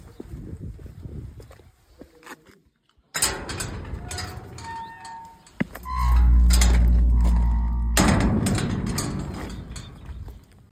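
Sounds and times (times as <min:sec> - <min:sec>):
cemetery entrance gate: 0:03.1 - 0:10.7.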